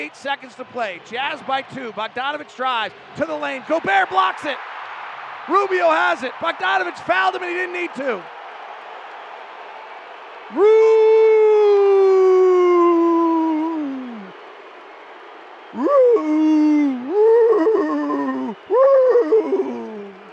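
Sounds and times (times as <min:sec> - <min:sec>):
speech: 0:00.0 - 0:04.7, 0:05.5 - 0:08.4, 0:10.5 - 0:10.9
arena crowd yodeling: 0:10.5 - 0:14.4, 0:15.7 - 0:20.3.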